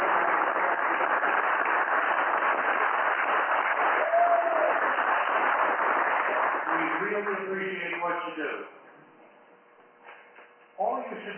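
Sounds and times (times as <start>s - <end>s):
crowd applauding: 0.0s - 7.6s
speech: 8.3s - 8.8s, 11.2s - 11.3s.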